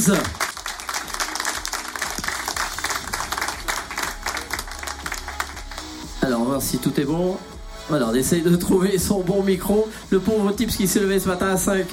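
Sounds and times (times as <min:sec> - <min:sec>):
speech: 0:00.0 - 0:00.4, 0:06.2 - 0:11.9
audience applause: 0:00.0 - 0:06.0.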